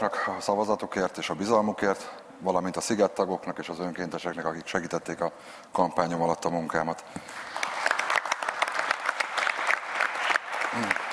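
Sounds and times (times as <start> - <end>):
speech: 0.0 - 7.6, 10.8 - 11.0
crowd applauding: 7.3 - 11.1.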